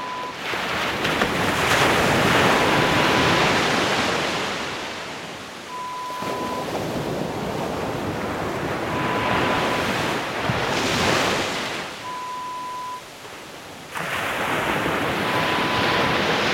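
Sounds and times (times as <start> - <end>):
relaxing waves: 0.0 - 16.5.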